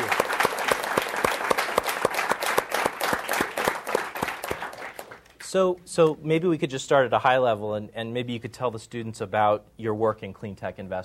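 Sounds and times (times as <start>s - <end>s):
audience applause from a small crowd welcoming a guest speaker: 0.0s - 5.4s
speech: 5.5s - 11.0s.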